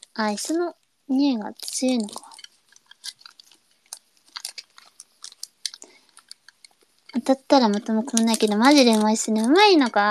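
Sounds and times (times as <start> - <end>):
speech: 0.2 - 2.3, 7.2 - 10.0
person chewing crunchy food: 2.0 - 9.4.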